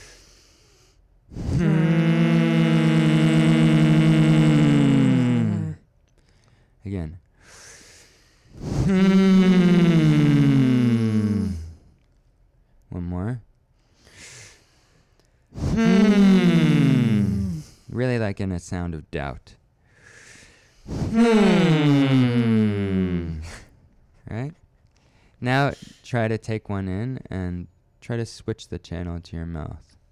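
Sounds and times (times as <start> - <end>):
short buzzing exhales through the nose: 0.0 - 5.8, 7.4 - 11.9, 13.9 - 17.9, 19.9 - 23.7
speech: 18.6 - 19.6, 20.8 - 22.5, 25.4 - 29.9.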